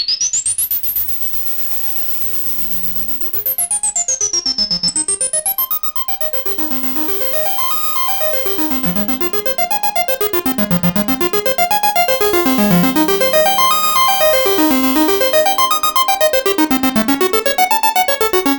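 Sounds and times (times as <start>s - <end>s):
synthesizer cascade in 8 steps with filter cutoff in C: 5.4s - 18.5s.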